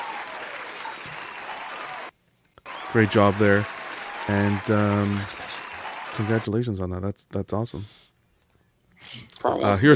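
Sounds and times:
crowd round of applause: 0.0s - 6.6s
speech: 2.9s - 5.4s, 6.2s - 8.0s, 9.1s - 9.9s.

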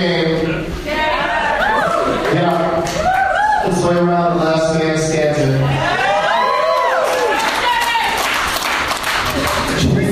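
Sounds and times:
speech: 0.0s - 0.4s, 3.8s - 6.0s
crowd cheering and shouting: 0.9s - 4.1s, 5.5s - 8.4s
scattered clapping: 7.0s - 10.0s.

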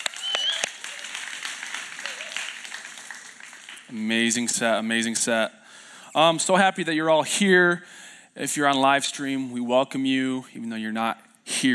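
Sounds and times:
church congregation at Resurrection Life Church in Granville, Michigan, applauding the worship team: 0.0s - 4.6s
speech: 3.9s - 11.7s.

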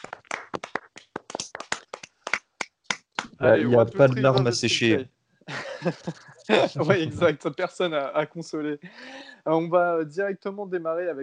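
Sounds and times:
hosts clapping: 0.0s - 3.4s
speech: 3.4s - 5.2s, 5.8s - 11.2s
laughter: 5.5s - 7.4s.

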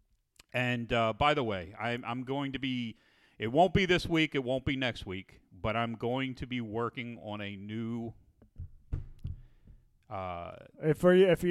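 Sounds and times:
speech: 0.5s - 8.2s, 10.1s - 11.4s
hands chopping down onto a table: 8.4s - 9.9s.

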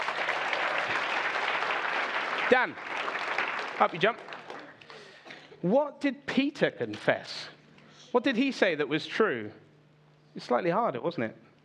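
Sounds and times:
room of people clapping: 0.0s - 5.2s
speech: 2.5s - 3.2s, 3.8s - 4.3s, 5.6s - 9.6s, 10.3s - 11.5s.

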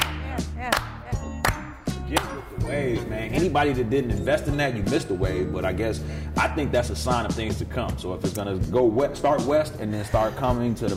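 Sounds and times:
slow hand claps: 0.0s - 2.5s
steady low tonal backdrop: 1.4s - 9.4s
speech: 2.4s - 10.9s.

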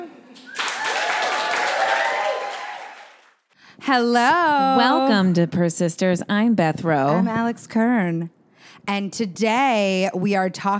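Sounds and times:
room full of people applauding: 0.4s - 3.5s
speech: 3.9s - 10.7s.

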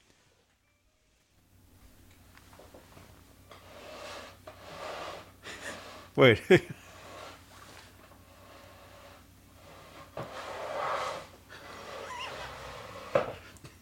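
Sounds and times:
chair scraped on floor imitating a growl: 2.5s - 6.2s, 6.8s - 13.6s
speech: 6.2s - 6.8s.

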